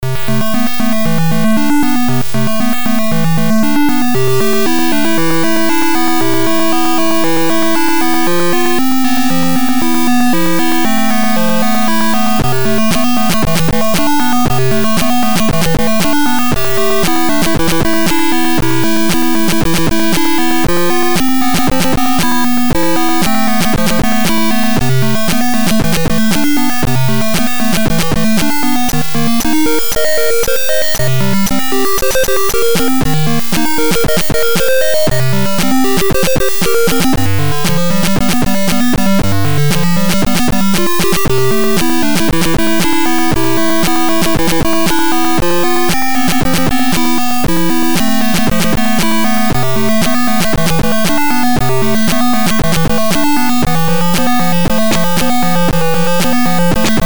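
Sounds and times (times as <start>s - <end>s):
1-bit music: 0.0s - 57.0s.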